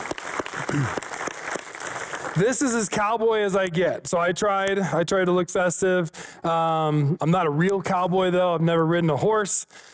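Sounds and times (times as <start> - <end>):
crowd clapping: 0.0 - 3.1
speech: 0.7 - 1.1, 2.4 - 9.9.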